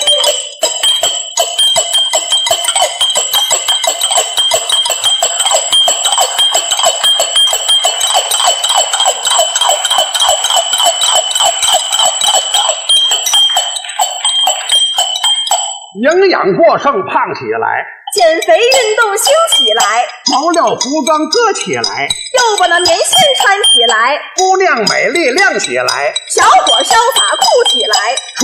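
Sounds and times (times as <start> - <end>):
pots, bowls and ladles struck rhythmically: 0.0 - 16.0, 18.1 - 28.4
speech: 16.4 - 28.4.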